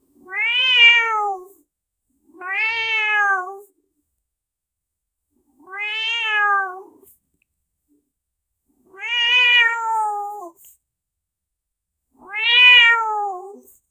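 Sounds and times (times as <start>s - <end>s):
domestic cat meowing: 0.3s - 1.5s, 2.4s - 3.6s, 5.7s - 7.0s, 9.0s - 10.6s, 12.2s - 13.7s.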